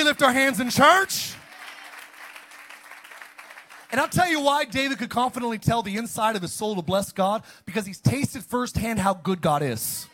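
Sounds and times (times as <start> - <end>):
audience hand clapping: 0.0 - 5.0
speech: 0.1 - 1.4, 3.9 - 10.1.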